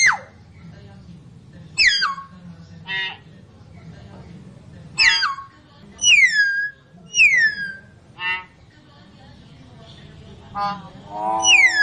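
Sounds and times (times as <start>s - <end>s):
lovebird calls used as a lure: 1.8s - 2.3s, 2.9s - 3.3s, 5.0s - 8.6s, 10.5s - 11.8s.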